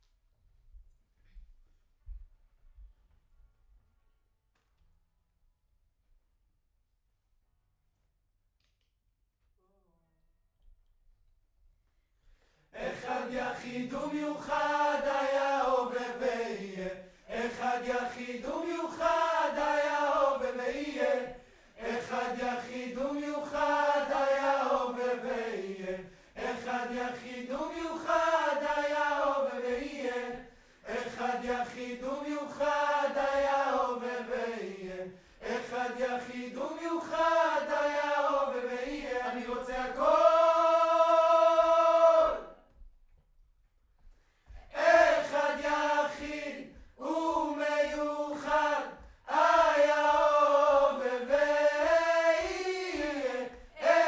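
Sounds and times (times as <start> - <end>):
distant choir: 12.8 - 42.6, 44.7 - 54.0.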